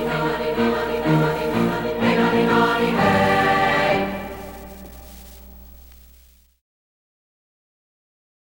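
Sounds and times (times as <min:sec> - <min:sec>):
chorus singing madrigals: 0:00.0 - 0:04.8.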